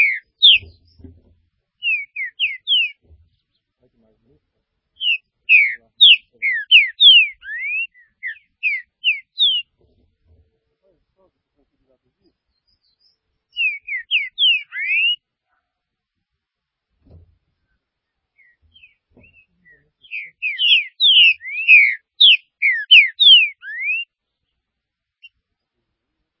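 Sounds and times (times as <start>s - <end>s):
green-winged saltator singing rich whistled phrases: 0.0s - 1.0s, 1.8s - 3.0s, 5.0s - 9.7s, 12.5s - 15.2s, 18.4s - 24.2s.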